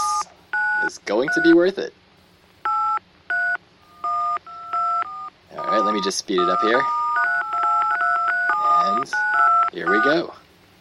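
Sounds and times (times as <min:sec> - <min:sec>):
speech: 0:00.9 - 0:02.0, 0:05.8 - 0:07.0, 0:08.8 - 0:10.4
touch-tone keypad beeps dialing a long telephone number: 0:02.7 - 0:10.2.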